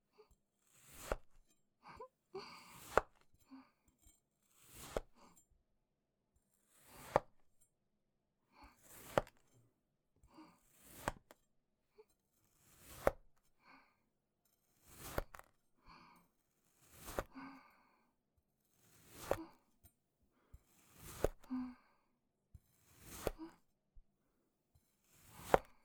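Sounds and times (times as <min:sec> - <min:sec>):
cutting sand clay: 0:00.6 - 0:01.3, 0:02.7 - 0:03.2, 0:04.4 - 0:05.4, 0:06.6 - 0:07.5, 0:08.8 - 0:09.5, 0:10.6 - 0:11.4, 0:12.4 - 0:13.3, 0:14.7 - 0:15.5, 0:16.6 - 0:17.4, 0:18.8 - 0:19.6, 0:20.7 - 0:21.6, 0:22.8 - 0:23.6, 0:25.0 - 0:25.8.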